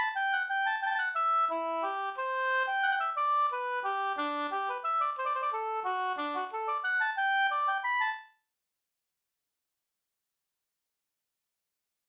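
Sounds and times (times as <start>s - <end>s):
waltz music: 0.0s - 8.2s.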